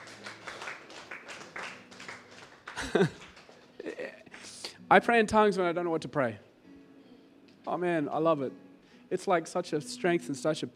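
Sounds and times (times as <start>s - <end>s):
audience clapping: 0.0s - 4.0s
laughter: 2.6s - 4.3s
speech: 2.9s - 3.2s, 4.9s - 6.5s, 7.7s - 10.7s.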